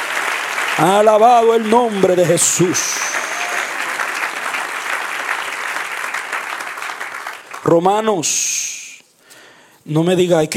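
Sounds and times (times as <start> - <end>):
audience applause: 0.0 - 7.8
speech: 0.8 - 3.3, 7.6 - 8.8, 9.8 - 10.5.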